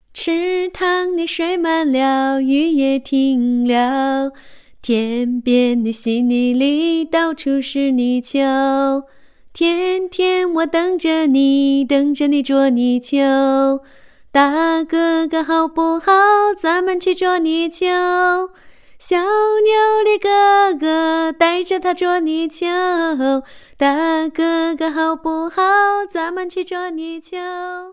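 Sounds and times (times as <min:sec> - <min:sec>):
Chinese woman singing a song: 0:00.0 - 0:27.9.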